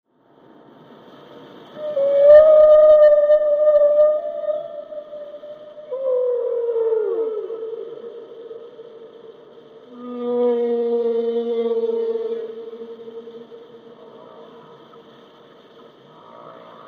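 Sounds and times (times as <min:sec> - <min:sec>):
whale song moaning: 0:01.8 - 0:15.0.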